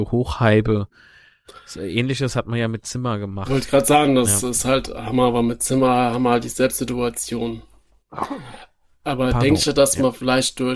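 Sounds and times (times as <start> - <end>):
speech: 0.0 - 10.7
sneeze: 8.1 - 8.7.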